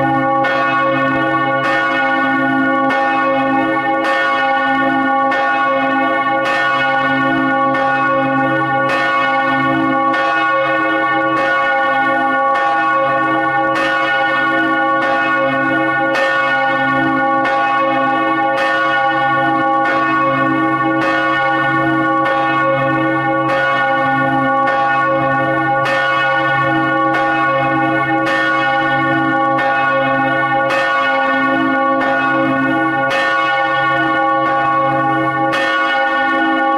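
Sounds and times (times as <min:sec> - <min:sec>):
church bells ringing: 0:00.0 - 0:36.7.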